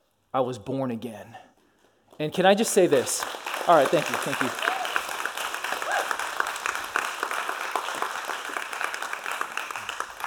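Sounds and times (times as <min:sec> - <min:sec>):
speech: 0:00.3 - 0:01.5, 0:02.2 - 0:04.8
sizable crowd applause: 0:02.6 - 0:10.2.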